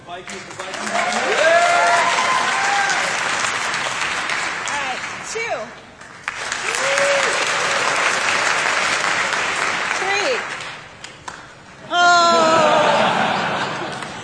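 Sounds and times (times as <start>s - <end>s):
speech: 0.1s - 1.4s
crowd clapping: 0.1s - 11.6s, 13.2s - 14.2s
scattered whoops and voices: 1.1s - 3.1s, 11.9s - 13.2s
laughter: 12.0s - 14.2s.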